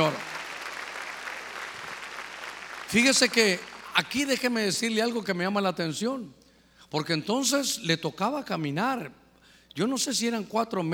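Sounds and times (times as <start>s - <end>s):
speech: 0.0s - 0.3s, 2.9s - 9.2s, 9.8s - 10.9s
audience clapping loudly: 0.0s - 4.2s.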